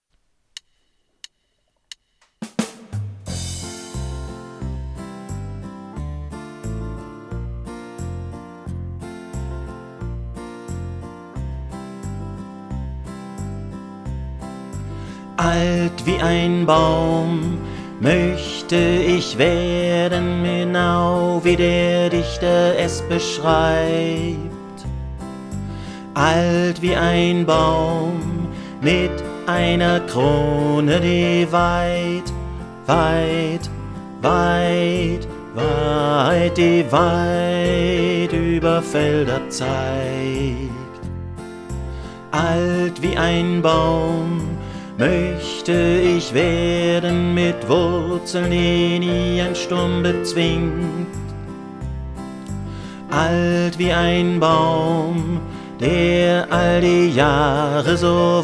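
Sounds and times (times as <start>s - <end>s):
bass: 2.9s - 58.4s.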